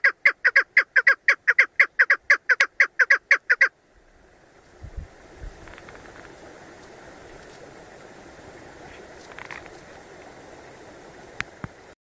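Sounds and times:
female partridge calling: 0:00.0 - 0:03.7.

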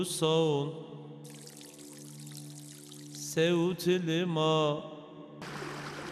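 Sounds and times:
speech: 0:00.0 - 0:01.4, 0:03.4 - 0:04.9
water pouring: 0:01.2 - 0:03.4.

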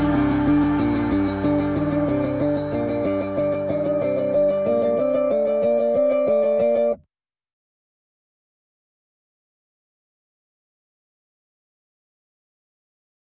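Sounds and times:
rock music: 0:00.0 - 0:06.8.

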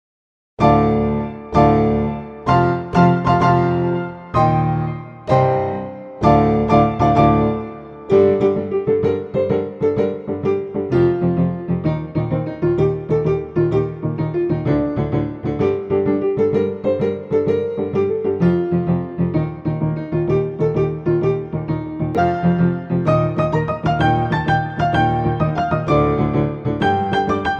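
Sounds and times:
piano: 0:00.6 - 0:27.5.

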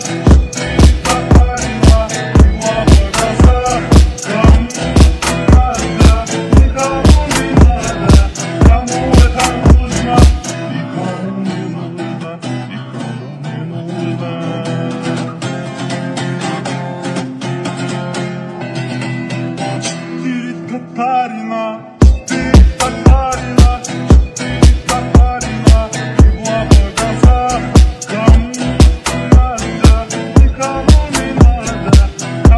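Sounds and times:
dance remix music: 0:00.0 - 0:11.0, 0:22.0 - 0:32.5.

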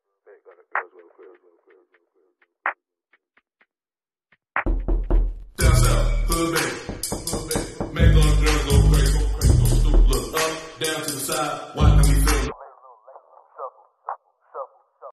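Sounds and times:
8D audio music: 0:04.6 - 0:12.5.

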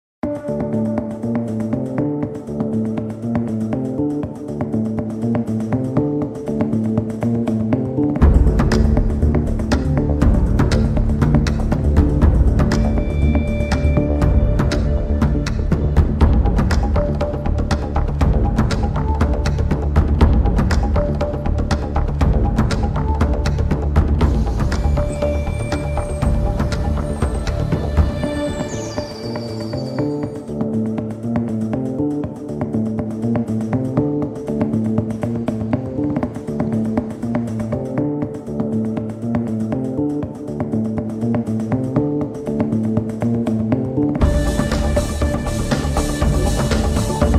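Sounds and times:
tv series music: 0:00.2 - 0:47.3.

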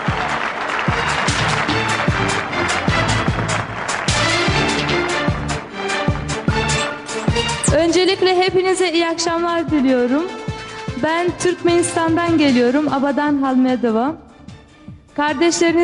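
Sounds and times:
cheering: 0:00.0 - 0:04.5
crowd applauding: 0:00.0 - 0:07.1
low thumping beat: 0:00.0 - 0:08.6, 0:14.4 - 0:15.2
speech: 0:08.0 - 0:10.4, 0:11.0 - 0:14.2, 0:15.2 - 0:15.8.

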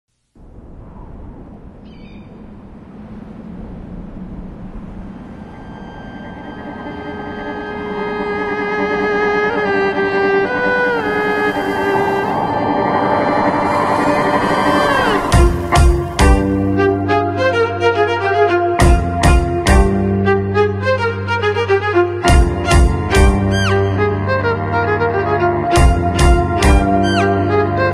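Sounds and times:
electric trio playing: 0:07.0 - 0:12.4, 0:13.7 - 0:27.9.

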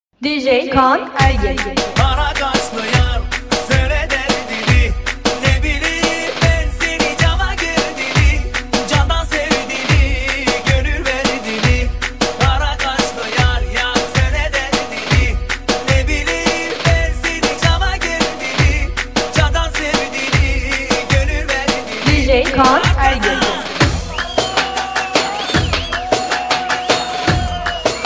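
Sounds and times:
fast rhythm remix: 0:01.2 - 0:28.0.

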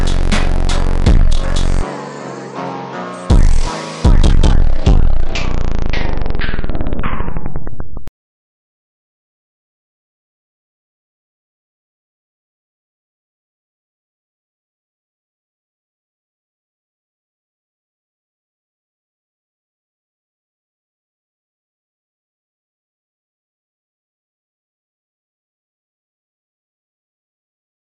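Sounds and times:
slowed phonk bass with reverb: 0:00.0 - 0:01.9, 0:03.3 - 0:08.1.

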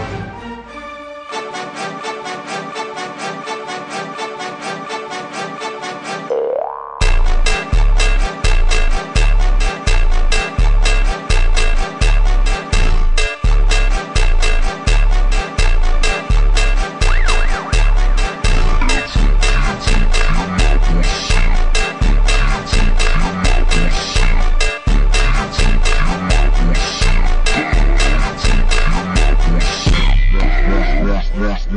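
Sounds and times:
slowed funk music: 0:06.3 - 0:31.7.

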